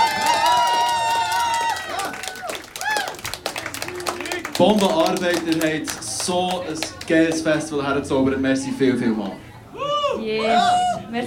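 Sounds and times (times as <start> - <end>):
audience cheering: 0.0 - 5.7
audience applause: 0.0 - 7.6
speech: 4.6 - 11.2.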